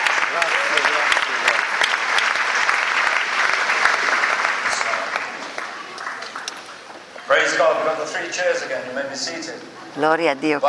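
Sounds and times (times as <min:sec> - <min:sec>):
audience applause: 0:00.0 - 0:07.0
speech: 0:00.4 - 0:01.2, 0:07.7 - 0:10.6.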